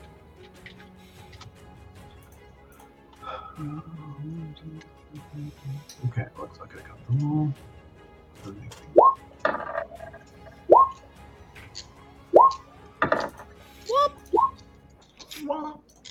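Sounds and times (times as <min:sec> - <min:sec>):
speech: 0:03.6 - 0:07.8, 0:08.4 - 0:09.3
dice rolling: 0:09.4 - 0:11.0, 0:11.6 - 0:13.4.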